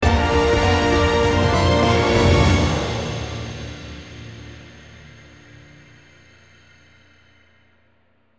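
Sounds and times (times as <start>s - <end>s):
final battle combat music stinger: 0.0s - 4.8s.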